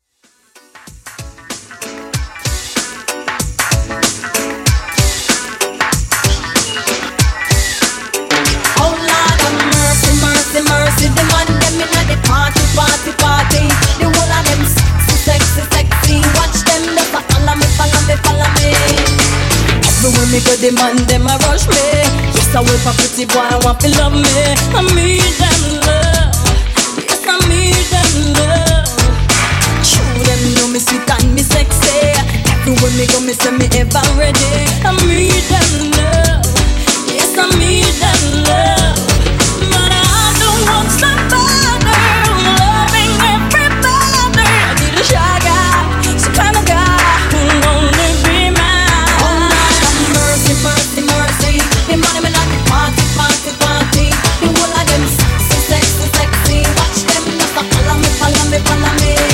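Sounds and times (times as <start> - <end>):
extended music mix at 95 BPM: 0.0 - 59.3.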